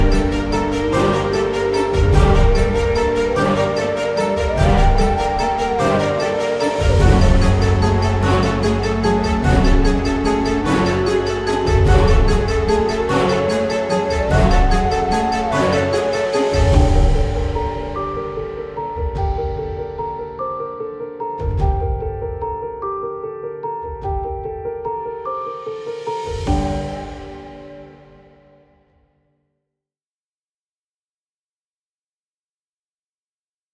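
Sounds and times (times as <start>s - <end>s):
mystical halloween background music: 0.0s - 22.8s, 25.7s - 28.7s.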